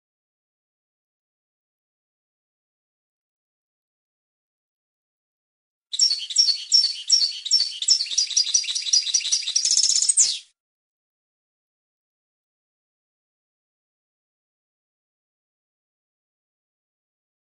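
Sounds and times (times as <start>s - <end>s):
European goldfinch song of tinkling twitter: 6.0s - 10.4s.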